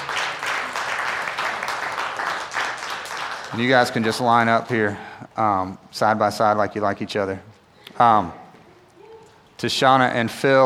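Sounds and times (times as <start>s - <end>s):
audience clapping: 0.0s - 4.9s
speech: 3.5s - 8.4s, 9.6s - 10.6s.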